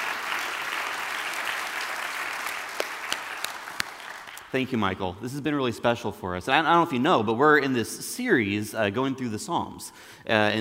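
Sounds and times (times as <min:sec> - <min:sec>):
audience clapping: 0:00.0 - 0:04.5
speech: 0:04.5 - 0:10.6.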